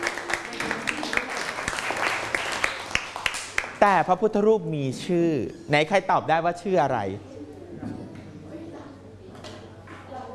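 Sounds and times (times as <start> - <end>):
classroom group clapping: 0.0 - 3.9
speech: 3.8 - 7.3.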